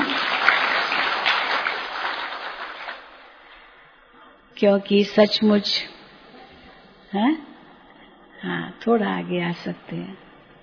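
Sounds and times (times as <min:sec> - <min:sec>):
audience applause: 0:00.0 - 0:03.4
speech: 0:04.6 - 0:05.9, 0:07.1 - 0:07.5, 0:08.4 - 0:10.3.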